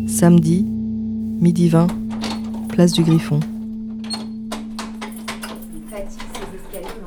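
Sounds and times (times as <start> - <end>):
speech: 0.2 - 0.7, 1.4 - 2.0, 2.7 - 3.5
key turning in a stiff door lock: 1.9 - 7.0.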